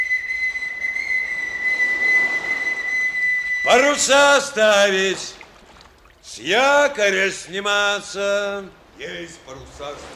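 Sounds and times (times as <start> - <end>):
boatswain's whistle calling all hands aboard a corvette: 0.0 - 4.6
speech: 3.7 - 5.4, 6.3 - 10.1.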